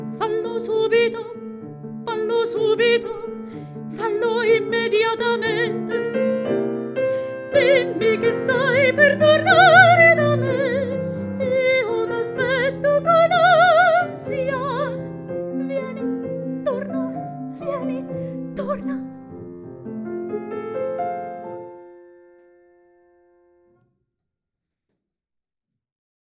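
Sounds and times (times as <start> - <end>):
piano: 0.0 - 23.8
singing voice: 2.0 - 6.2, 7.2 - 19.2.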